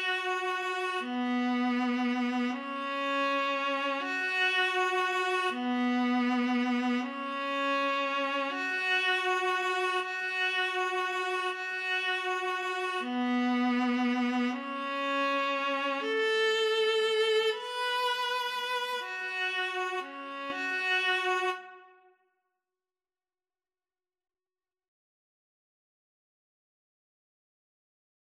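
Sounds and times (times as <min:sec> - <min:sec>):
violin and viola duet: 0:00.0 - 0:22.1.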